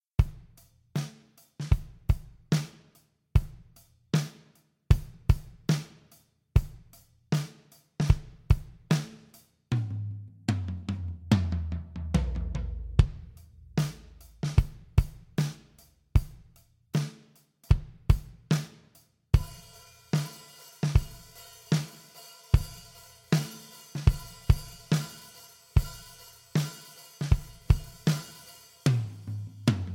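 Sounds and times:
dry black drum kit: 0.0 - 29.9.

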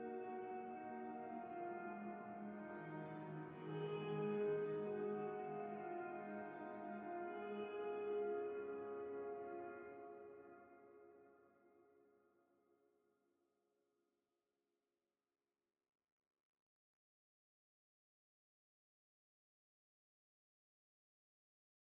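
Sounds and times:
Blackhole iOS Nebular Klavier piano: 0.0 - 11.1.

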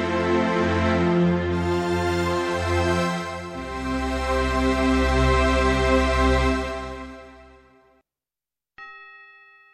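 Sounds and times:
string instruments: 0.0 - 7.7.

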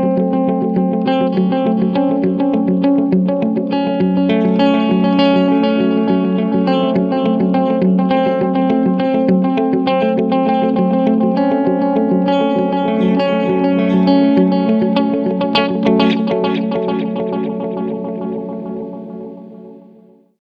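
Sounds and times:
medium delay time effect: 0.2 - 19.8.

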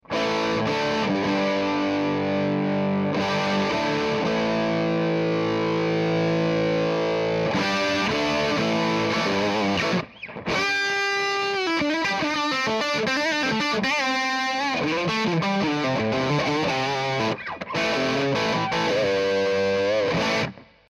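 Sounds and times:
distorted guitar through a pickup: 0.0 - 20.9.

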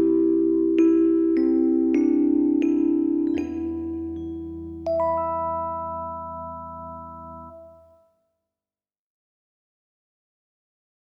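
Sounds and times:
electric piano through Lexicon Model200 rich plate reverb: 0.0 - 8.0.

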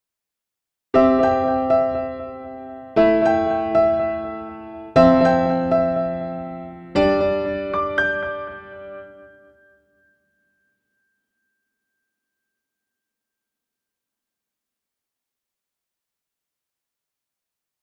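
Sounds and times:
piano through Korg SDD 3000 delay: 1.0 - 11.2.

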